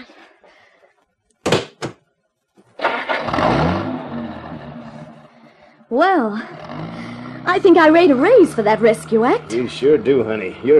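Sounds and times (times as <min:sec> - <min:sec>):
Cadillac engine cranking, catching and idling: 0:02.7 - 0:10.7
speech: 0:05.9 - 0:06.7, 0:07.5 - 0:10.7.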